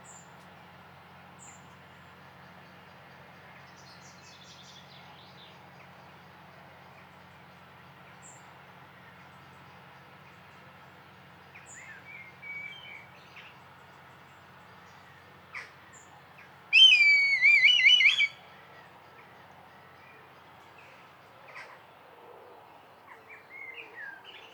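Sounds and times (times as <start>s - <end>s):
red kite giving a wavering tremulous whistle: 16.8s - 18.3s.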